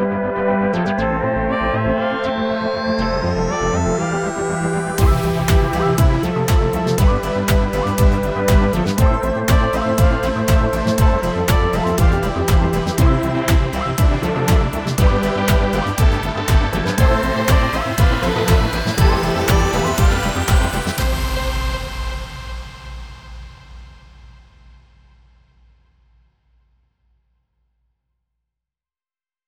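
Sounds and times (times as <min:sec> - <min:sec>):
happy pop music: 0:00.8 - 0:22.4.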